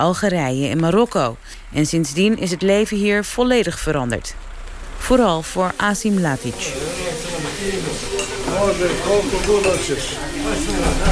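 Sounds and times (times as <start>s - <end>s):
speech: 0.0s - 7.0s, 7.6s - 11.1s
large pan of rice simmering on a gas burner in a restaurant kitchen: 4.5s - 11.1s.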